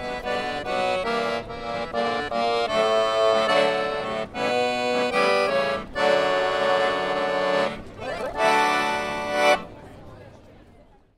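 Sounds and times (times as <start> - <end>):
accordion performer playing in a street of a European city: 0.0 - 9.8.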